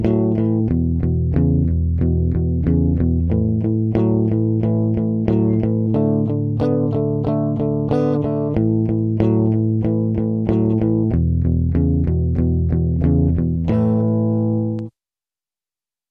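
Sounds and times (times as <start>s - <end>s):
blues in C: 0.0s - 14.9s.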